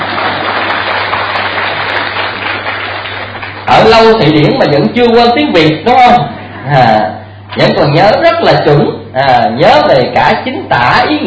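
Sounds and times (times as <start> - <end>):
audience applause: 0.0 - 4.0
speech: 3.8 - 11.2.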